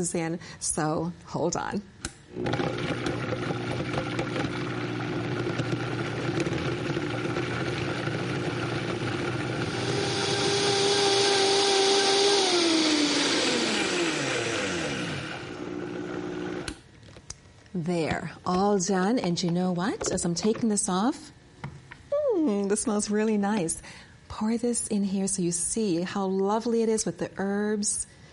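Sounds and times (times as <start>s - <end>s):
speech: 0.0s - 4.0s, 17.8s - 21.3s, 22.7s - 28.1s
Vitamix blender running: 2.3s - 16.8s.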